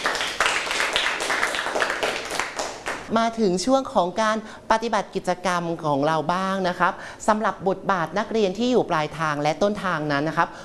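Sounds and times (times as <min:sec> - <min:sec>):
group of people clapping together: 0:00.0 - 0:03.1
speech: 0:03.1 - 0:10.6.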